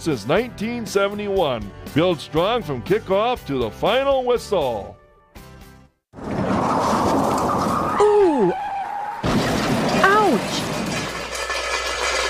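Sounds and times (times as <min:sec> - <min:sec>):
speech: 0:00.0 - 0:05.0
car crashing: 0:06.2 - 0:12.2
engine and road noise: 0:06.2 - 0:12.2
tires screeching: 0:06.2 - 0:12.2.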